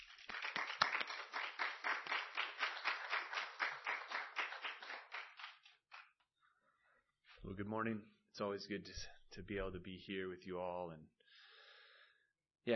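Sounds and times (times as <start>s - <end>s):
church congregation applause welcoming a visiting brother: 0.0s - 6.3s
speech: 7.4s - 11.2s.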